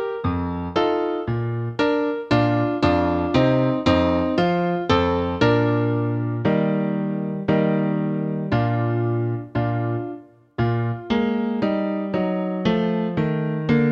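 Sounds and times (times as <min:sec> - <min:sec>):
musical accompaniment: 0:00.0 - 0:13.8.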